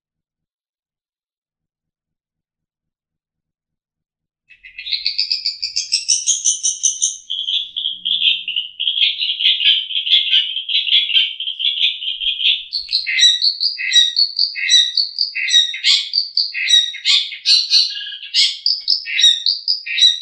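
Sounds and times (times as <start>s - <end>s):
long-tailed shrike trilling: 4.5s - 20.1s.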